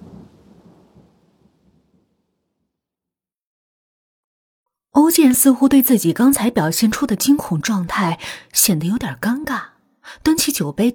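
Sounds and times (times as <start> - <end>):
howling wind: 0.0 - 2.4
speech: 5.0 - 10.9.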